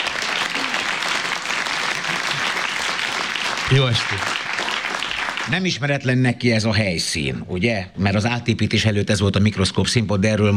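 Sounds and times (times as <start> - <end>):
radio cabaret audience clapping for a performer: 0.0 - 5.8
speech: 3.7 - 4.4, 5.5 - 10.5.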